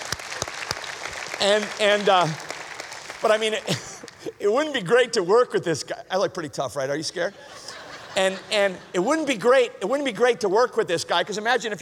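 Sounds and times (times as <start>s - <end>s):
audience applause: 0.0s - 4.3s
speech: 1.4s - 2.4s, 3.2s - 11.7s
laughter: 3.6s - 4.4s, 7.2s - 9.5s.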